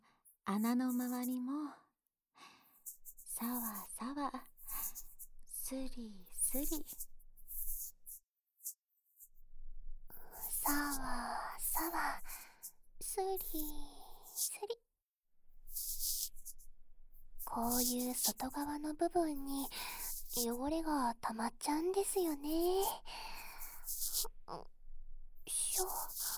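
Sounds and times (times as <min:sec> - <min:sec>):
person whispering in both ears: 0:00.5 - 0:01.7, 0:03.2 - 0:07.7, 0:10.1 - 0:14.8, 0:17.4 - 0:24.7, 0:25.5 - 0:26.3.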